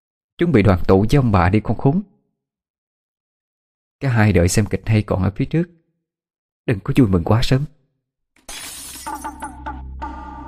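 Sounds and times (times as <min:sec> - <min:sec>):
speech: 0:00.4 - 0:02.1, 0:04.0 - 0:05.8, 0:06.6 - 0:07.8
glass bottle thrown into the corner of a wall smashing: 0:08.4 - 0:09.6
bright tinkling glass shards scattering: 0:08.5 - 0:09.5.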